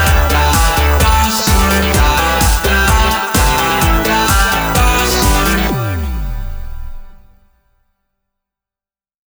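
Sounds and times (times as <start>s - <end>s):
horn: 0.0s - 7.0s.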